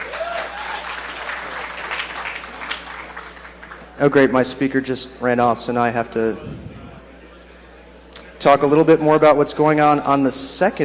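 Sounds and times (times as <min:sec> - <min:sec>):
audience applause: 0:00.0 - 0:04.0
speech: 0:04.0 - 0:06.7, 0:08.4 - 0:10.8.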